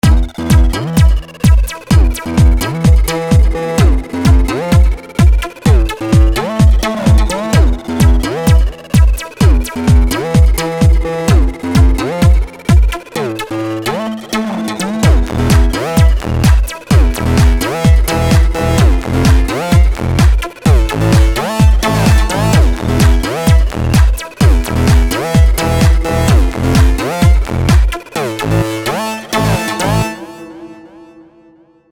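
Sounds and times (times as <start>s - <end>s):
tech progressive house music: 0.0s - 30.8s.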